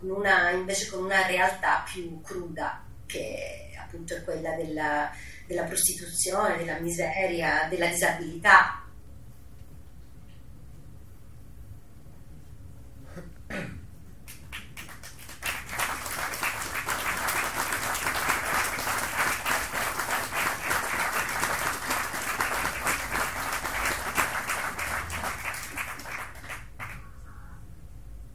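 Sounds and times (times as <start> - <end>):
speech: 0.0 - 8.8, 13.2 - 13.8
crowd sustained applause: 14.3 - 27.1.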